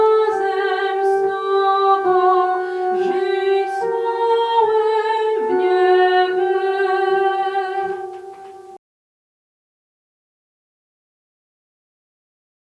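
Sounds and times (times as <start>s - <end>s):
sopranos singing: 0.0s - 8.8s.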